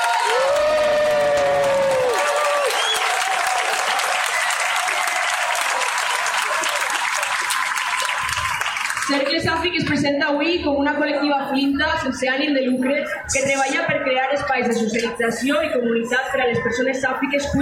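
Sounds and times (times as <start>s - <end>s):
audience applause: 0.0s - 9.3s
speech: 9.1s - 17.5s.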